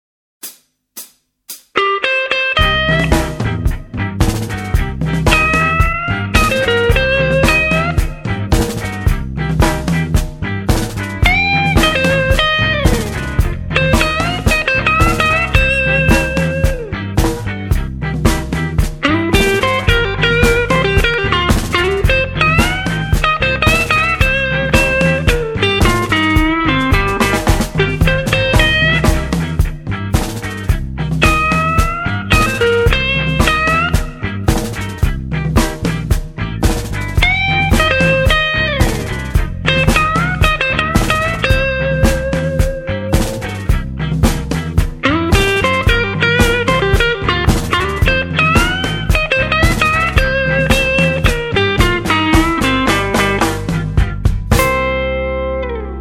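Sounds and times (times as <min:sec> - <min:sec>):
blues jazz music: 0:01.7 - 0:55.9.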